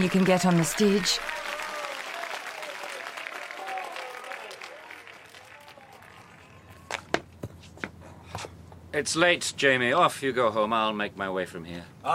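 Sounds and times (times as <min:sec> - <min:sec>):
speech: 0:00.0 - 0:01.4, 0:09.0 - 0:12.1
theatre audience applause: 0:00.0 - 0:07.0.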